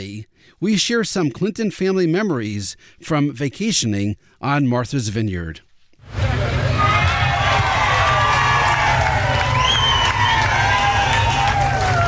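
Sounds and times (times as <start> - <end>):
speech: 0.0 - 6.2
crowd cheering in the street on Martha's Vineyard: 6.1 - 12.0.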